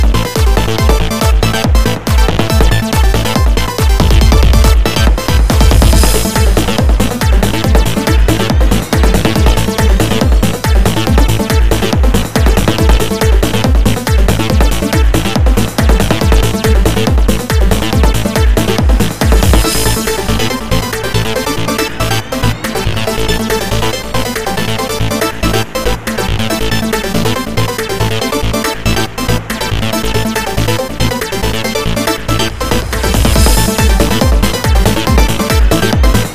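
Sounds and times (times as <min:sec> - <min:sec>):
trance music: 0:00.0 - 0:36.3.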